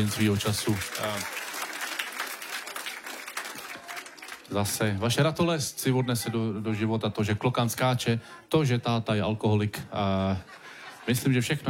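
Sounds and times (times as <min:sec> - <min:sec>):
speech: 0:00.0 - 0:01.4, 0:04.5 - 0:11.6
audience applause: 0:00.0 - 0:04.8
laughter: 0:10.1 - 0:11.6.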